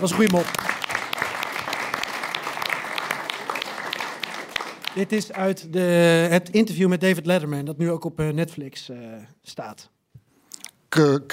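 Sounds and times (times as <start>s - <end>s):
speech: 0.0s - 0.7s, 5.0s - 10.0s, 10.9s - 11.3s
audience applause for Zelensky: 0.0s - 5.6s.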